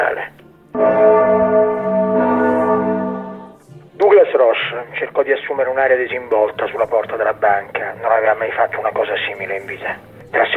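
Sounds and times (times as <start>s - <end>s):
time signal bell chime: 0.8s - 3.6s
speech: 5.0s - 10.5s.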